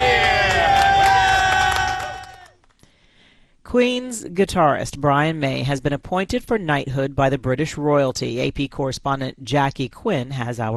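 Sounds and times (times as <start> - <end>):
large crowd shouting and cheering: 0.0 - 2.6
speech: 3.7 - 10.7.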